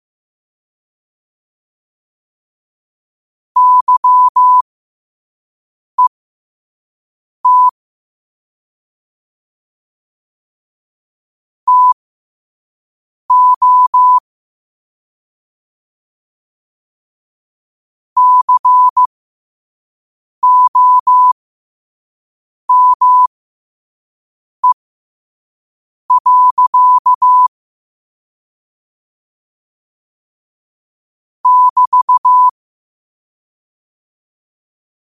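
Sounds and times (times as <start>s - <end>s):
morse code at 5 wpm: 3.6s - 4.6s, 7.5s - 7.7s, 11.7s - 12.0s, 13.3s - 14.2s, 18.2s - 19.1s, 20.4s - 21.4s, 22.7s - 23.3s, 26.1s - 27.5s, 31.4s - 32.5s.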